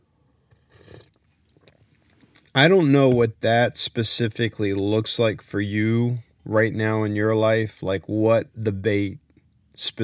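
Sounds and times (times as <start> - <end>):
sip of coffee slurping: 0.5 - 2.5
speech: 2.6 - 9.2, 9.8 - 10.0.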